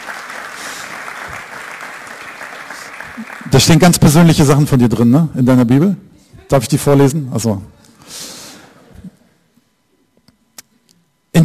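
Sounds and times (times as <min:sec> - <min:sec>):
audience applause: 0:00.0 - 0:04.2
speech: 0:03.2 - 0:08.2.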